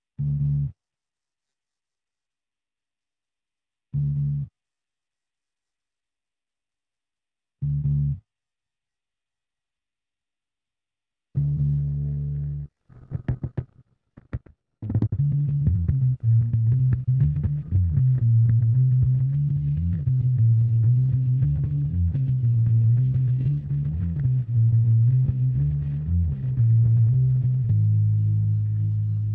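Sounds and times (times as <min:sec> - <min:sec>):
bass: 0:00.2 - 0:00.8, 0:03.9 - 0:04.5, 0:07.6 - 0:08.3, 0:11.4 - 0:29.3.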